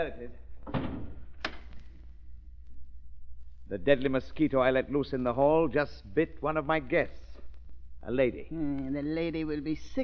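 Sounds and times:
speech: 0.0 - 0.9, 3.7 - 7.2, 8.0 - 10.0
stuck door being forced open: 0.6 - 1.6.

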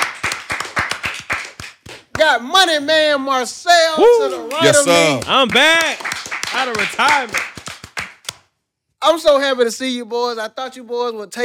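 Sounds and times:
hands clapping: 0.0 - 3.2, 4.0 - 8.5
speech: 2.2 - 7.5, 9.0 - 11.4.

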